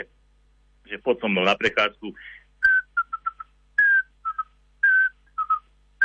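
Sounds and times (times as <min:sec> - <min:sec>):
speech: 0:00.9 - 0:02.4
tawny owl whistling call: 0:02.7 - 0:06.0.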